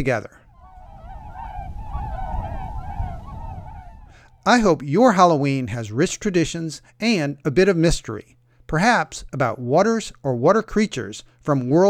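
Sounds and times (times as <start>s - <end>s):
speech: 0.0s - 0.4s, 4.4s - 11.8s
swan calls: 0.4s - 4.6s.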